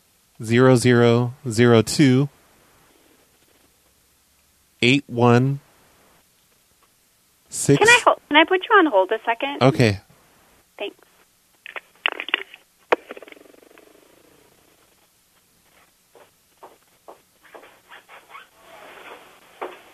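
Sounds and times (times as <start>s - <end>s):
speech: 0.4s - 2.4s, 4.8s - 5.6s, 7.5s - 10.0s, 10.8s - 11.1s
fast irritated footsteps: 15.6s - 17.9s.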